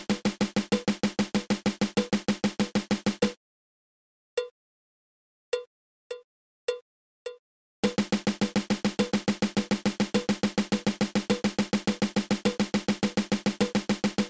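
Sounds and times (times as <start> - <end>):
drum single stroke roll: 0.0 - 3.4, 7.8 - 14.2.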